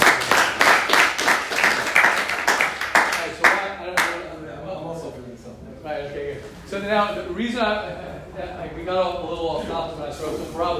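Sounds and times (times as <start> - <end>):
group clapping in a steady rhythm: 0.0 - 4.2
speech: 6.8 - 10.7.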